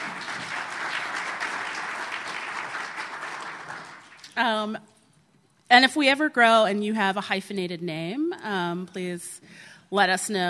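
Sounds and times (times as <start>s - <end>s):
audience applause: 0.0s - 4.3s
speech: 4.4s - 4.9s, 5.7s - 10.4s.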